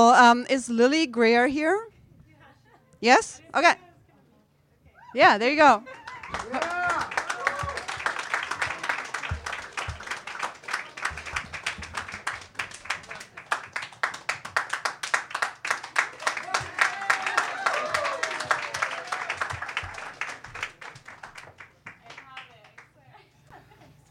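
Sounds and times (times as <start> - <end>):
speech: 0.0 - 1.9, 3.0 - 3.8, 5.2 - 6.9
crowd cheering: 5.8 - 21.8
audience applause: 5.9 - 22.5.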